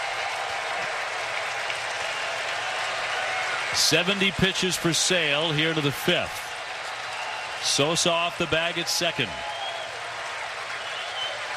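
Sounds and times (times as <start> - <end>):
stadium crowd cheering and applauding: 0.0 - 11.5
speech: 3.7 - 6.5, 7.6 - 9.6.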